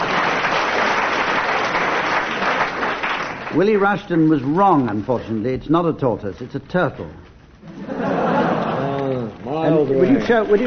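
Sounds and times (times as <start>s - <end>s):
enormous round of audience applause: 0.0s - 3.8s, 10.0s - 10.6s
speech: 3.6s - 8.0s, 9.5s - 10.6s
laughter: 7.6s - 10.6s.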